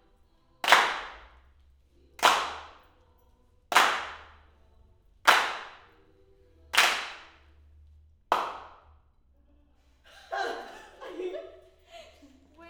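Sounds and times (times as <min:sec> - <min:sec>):
mid claps: 0:00.6 - 0:01.4, 0:02.2 - 0:02.9, 0:03.7 - 0:04.4, 0:05.3 - 0:06.0, 0:06.7 - 0:07.4, 0:08.3 - 0:08.8
laughter: 0:10.1 - 0:12.6.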